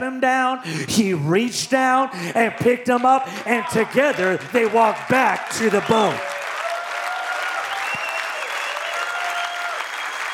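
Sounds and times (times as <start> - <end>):
speech: 0.0 - 6.4
audience clapping hands: 2.4 - 10.3.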